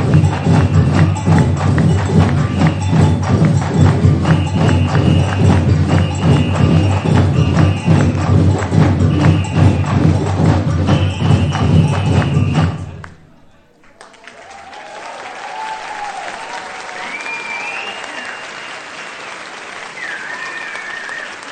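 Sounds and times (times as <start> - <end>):
background music: 0.0 - 13.5.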